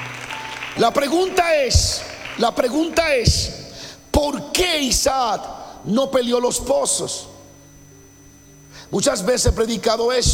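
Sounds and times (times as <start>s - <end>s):
audience applause: 0.0s - 3.6s
speech: 0.8s - 3.6s, 4.2s - 7.3s, 8.9s - 10.3s.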